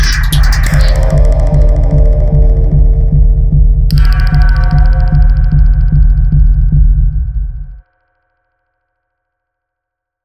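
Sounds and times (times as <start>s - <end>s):
thunder drum: 0.0s - 7.8s.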